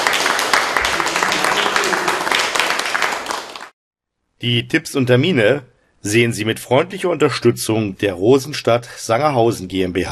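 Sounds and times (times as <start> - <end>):
audience applause: 0.0 - 3.8
speech: 4.4 - 10.0.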